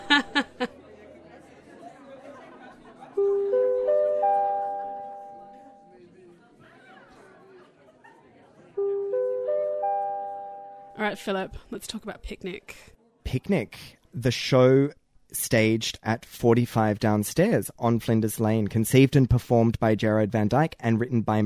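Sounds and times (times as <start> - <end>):
laughter: 0.0 - 9.0
bell ringing: 3.2 - 6.0, 8.8 - 11.2
speech: 11.1 - 21.4.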